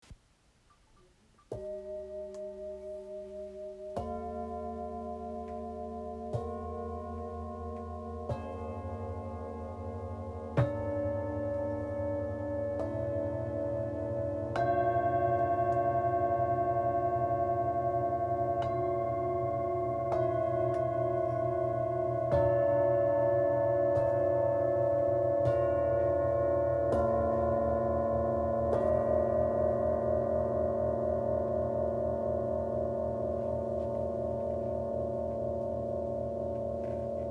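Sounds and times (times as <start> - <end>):
Tibetan singing bowls therapy set: 1.5 - 37.2.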